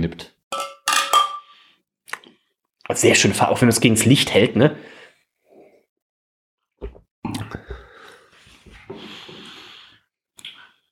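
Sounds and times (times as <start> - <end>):
speech: 0.0 - 0.7, 2.9 - 4.9
glasses clinking in a toast: 0.5 - 1.6.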